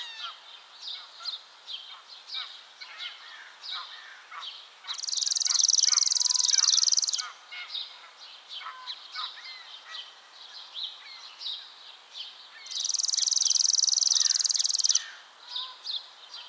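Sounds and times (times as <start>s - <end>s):
other birds chirping: 0.0s - 16.4s
chipping sparrow trill: 4.9s - 7.3s, 12.8s - 15.2s.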